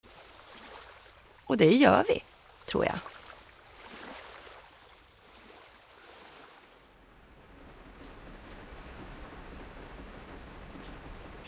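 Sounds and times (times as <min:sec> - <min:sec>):
speech: 0:01.5 - 0:03.1
steady rain pattering against a window: 0:06.9 - 0:11.4.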